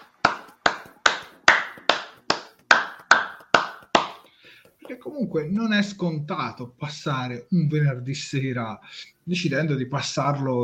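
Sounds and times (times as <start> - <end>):
small round of applause: 0.0 - 4.2
speech: 4.9 - 10.6.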